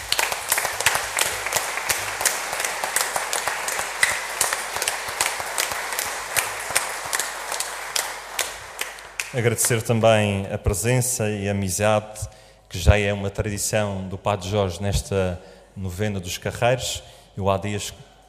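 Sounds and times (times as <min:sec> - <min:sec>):
audience applauding in church: 0:00.0 - 0:09.9
speech: 0:09.3 - 0:18.1.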